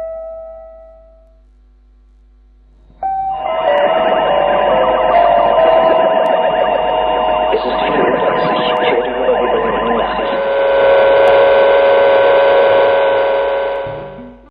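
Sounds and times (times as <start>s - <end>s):
RIAS Berlin radio jamming transmitter noise: 2.9s - 14.4s.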